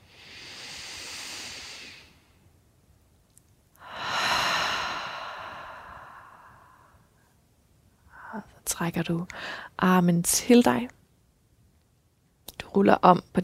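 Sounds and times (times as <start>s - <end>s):
deep breath in and out during a guided yoga session: 0.0s - 2.4s, 3.8s - 7.3s, 9.3s - 9.8s
speech: 8.4s - 11.0s, 12.7s - 13.4s.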